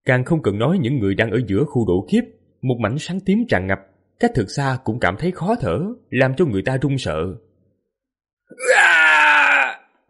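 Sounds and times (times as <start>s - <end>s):
speech: 0.0s - 7.4s, 8.5s - 9.1s
agonized screaming and wailing: 8.5s - 10.0s.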